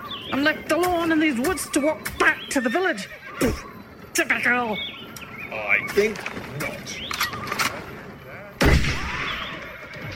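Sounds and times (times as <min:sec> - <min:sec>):
speech: 0:00.4 - 0:04.9, 0:05.5 - 0:07.2
gunshot fired in the woods at a coachman: 0:08.6 - 0:09.6.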